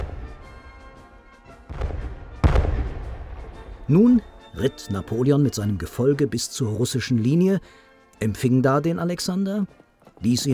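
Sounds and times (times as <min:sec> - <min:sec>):
cannon shots booming, announcing a crossing of the river: 0:00.0 - 0:00.8, 0:01.7 - 0:04.5
speech: 0:03.9 - 0:10.5.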